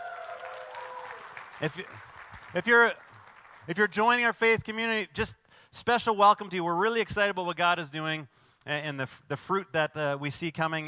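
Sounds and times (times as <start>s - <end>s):
audience cheering: 0.0s - 3.9s
speech: 1.6s - 3.0s, 3.7s - 10.8s.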